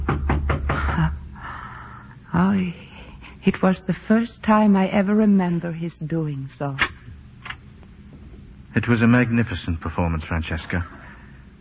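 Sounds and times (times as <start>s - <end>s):
knocking on a door: 0.0s - 1.1s
speech: 2.4s - 6.9s, 8.8s - 11.0s.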